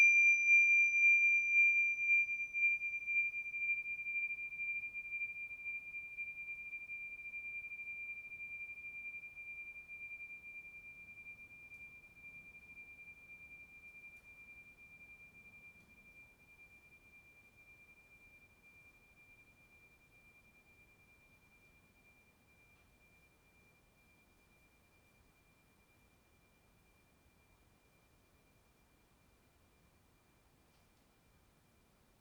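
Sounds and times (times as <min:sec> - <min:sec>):
53mm tingshas chiming: 0:00.0 - 0:23.9.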